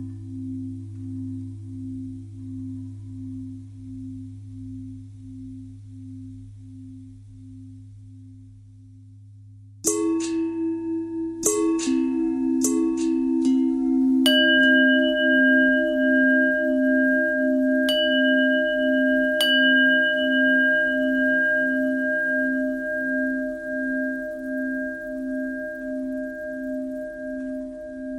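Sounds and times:
long bell ringing: 9.9s - 28.1s.

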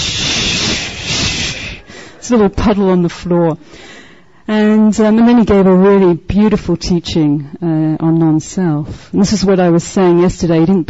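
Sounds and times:
person imitating a deflating balloon with a breathy hiss: 0.0s - 2.2s
speech: 2.3s - 3.9s, 4.5s - 10.8s.

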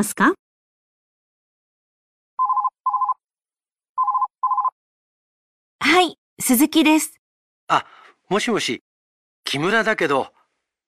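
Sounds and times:
speech: 0.0s - 0.4s, 5.8s - 8.9s, 9.5s - 10.4s
telephone ringing: 2.4s - 3.2s, 4.0s - 4.7s.

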